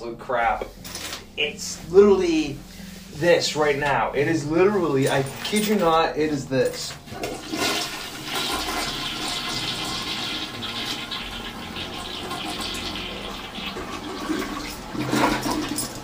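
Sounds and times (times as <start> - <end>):
speech: 0.0 - 0.8, 1.4 - 7.8
toilet flushing: 7.1 - 16.0.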